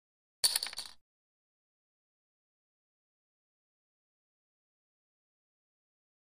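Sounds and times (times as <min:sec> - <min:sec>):
poker chips tossed: 0:00.4 - 0:01.0.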